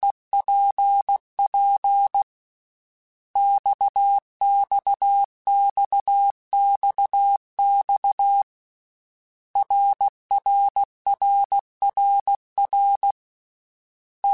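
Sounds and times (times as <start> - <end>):
Morse code CW basic letter groups: 0.0 - 2.3, 3.4 - 8.5, 9.6 - 13.2.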